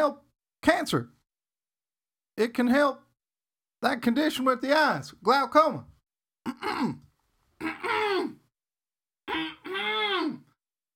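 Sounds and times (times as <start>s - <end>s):
speech: 0.0s - 1.2s, 2.4s - 3.0s, 3.8s - 8.4s, 9.3s - 10.4s
throat clearing: 6.4s - 8.4s, 9.3s - 10.5s.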